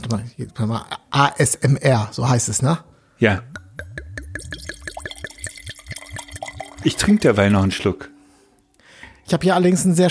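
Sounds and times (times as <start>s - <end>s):
speech: 0.0s - 4.7s, 6.8s - 8.1s, 9.3s - 10.0s
cold white wine pouring into a glass: 3.8s - 8.1s.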